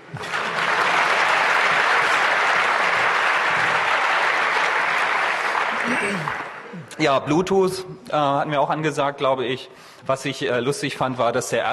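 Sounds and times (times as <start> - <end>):
audience applause: 0.0 - 6.8
speech: 7.0 - 11.7.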